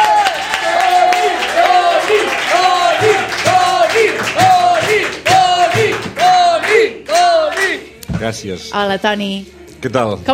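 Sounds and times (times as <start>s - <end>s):
audience applause: 0.0s - 7.8s
speech: 8.3s - 10.3s.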